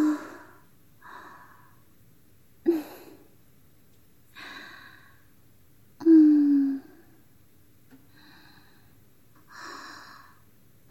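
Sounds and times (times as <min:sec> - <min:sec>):
breathing: 0:00.1 - 0:01.8, 0:04.3 - 0:05.3, 0:08.1 - 0:10.4.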